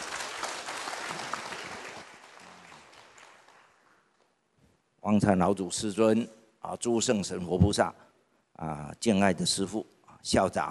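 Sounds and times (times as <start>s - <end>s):
audience applause: 0.0s - 4.0s
speech: 5.1s - 10.6s.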